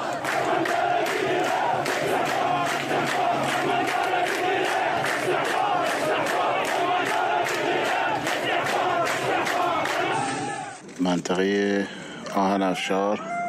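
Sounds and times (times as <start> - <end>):
crowd chanting at a night-time protest in Khuzestan: 0.0 - 10.8
speech: 11.3 - 13.3.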